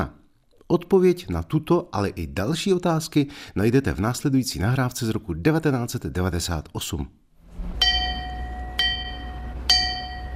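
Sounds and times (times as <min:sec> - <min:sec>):
speech: 0:00.0 - 0:07.2
metallic knocks on a large clapperless tower bell: 0:07.8 - 0:10.3.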